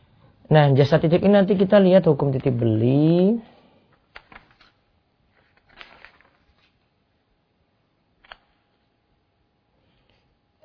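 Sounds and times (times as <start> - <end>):
speech: 0.4 - 3.5
book pages being turned during a lesson: 4.1 - 6.9.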